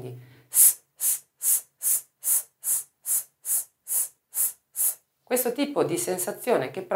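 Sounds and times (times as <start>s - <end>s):
voice making short sharp hissed S sounds: 0.5s - 5.0s
speech: 5.3s - 6.9s.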